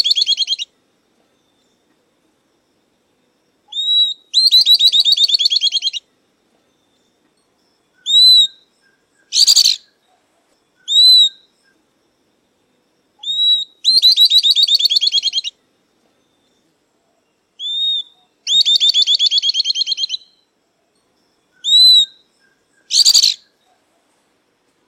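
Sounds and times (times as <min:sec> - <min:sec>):
southern beardless-tyrannulet song: 0:00.0 - 0:00.7, 0:03.7 - 0:06.0, 0:08.0 - 0:10.0, 0:10.8 - 0:11.5, 0:13.2 - 0:15.6, 0:17.6 - 0:20.4, 0:21.6 - 0:23.6.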